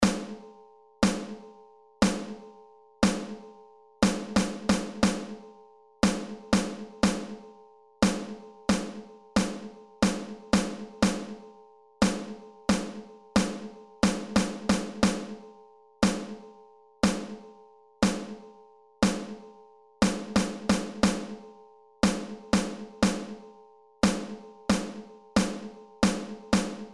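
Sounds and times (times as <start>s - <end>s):
snare drum rhythms: 0.0s - 0.4s, 1.0s - 1.4s, 2.0s - 2.4s, 3.0s - 3.4s, 4.0s - 5.4s, 6.0s - 7.4s, 8.0s - 11.4s, 12.0s - 15.4s, 16.0s - 16.4s, 17.0s - 17.4s, 18.0s - 18.4s, 19.0s - 19.4s, 20.0s - 21.4s, 22.0s - 23.4s, 24.0s - 26.9s.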